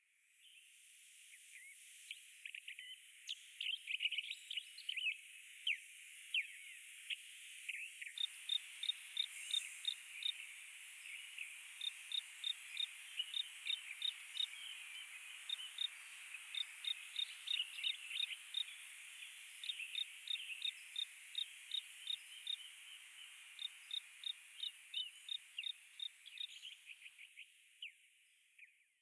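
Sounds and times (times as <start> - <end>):
generic outdoor night ambience: 0.1 - 28.8.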